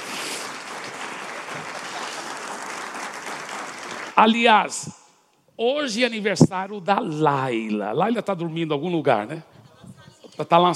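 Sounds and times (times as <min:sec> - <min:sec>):
audience applause: 0:00.0 - 0:04.5
speech: 0:04.2 - 0:05.0, 0:05.6 - 0:09.5, 0:10.4 - 0:10.7.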